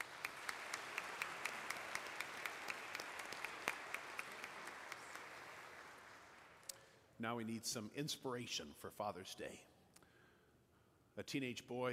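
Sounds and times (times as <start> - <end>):
audience applauding: 0.0 - 6.7
speech: 7.2 - 9.7, 11.2 - 11.9.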